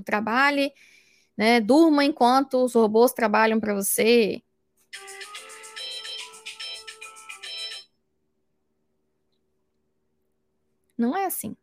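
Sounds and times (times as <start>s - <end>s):
speech: 0.0s - 5.3s, 11.0s - 11.6s
mobile phone alarm ringing: 5.0s - 7.9s.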